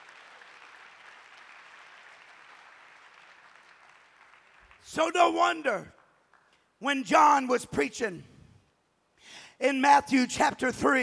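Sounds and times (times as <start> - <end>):
audience clapping hands: 0.0 - 6.7
speech: 4.8 - 6.0, 6.8 - 8.3, 9.2 - 11.0.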